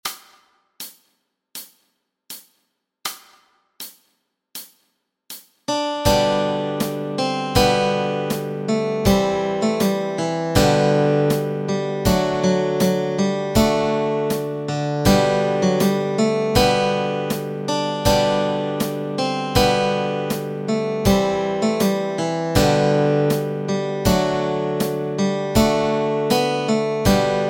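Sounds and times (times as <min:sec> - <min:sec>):
melody and chords: 0:05.7 - 0:27.4.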